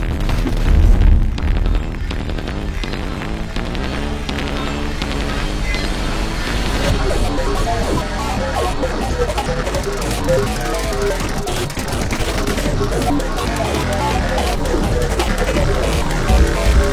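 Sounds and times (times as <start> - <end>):
chase-style glitchcore music: 0.0 - 16.9.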